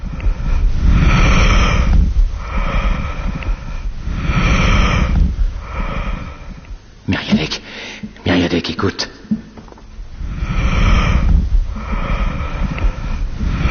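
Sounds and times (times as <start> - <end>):
vesicular breath sounds through a stethoscope: 0.0 - 6.9, 10.2 - 13.6
person speaking: 7.0 - 9.6.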